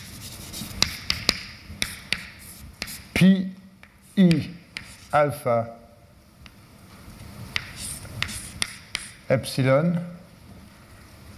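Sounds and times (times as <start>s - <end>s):
writing on a board during a maths lecture: 0.8s - 3.0s, 3.8s - 5.0s, 7.6s - 9.2s
speech: 3.2s - 3.6s, 4.2s - 5.8s, 9.3s - 10.2s.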